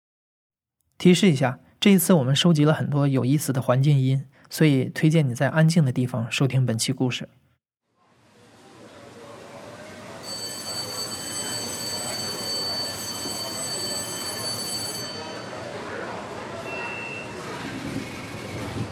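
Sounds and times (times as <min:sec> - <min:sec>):
speech: 0:01.0 - 0:07.4
Beijing subway train running: 0:08.6 - 0:18.9.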